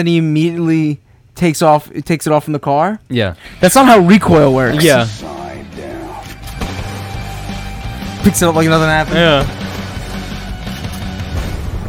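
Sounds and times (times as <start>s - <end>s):
speech: 0.0s - 5.4s, 8.2s - 9.6s
explosion in a film clip: 11.2s - 11.8s.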